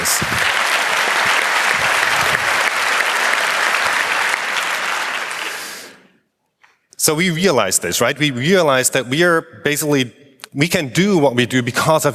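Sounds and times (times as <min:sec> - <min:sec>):
audience applause: 0:00.0 - 0:06.0
speech: 0:07.1 - 0:12.1.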